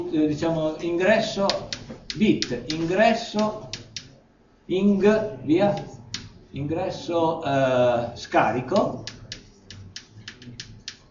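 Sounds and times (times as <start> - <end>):
speech: 0.1 - 3.7, 4.7 - 9.2
typing on a computer keyboard: 1.4 - 4.2, 5.7 - 6.4, 8.8 - 11.1.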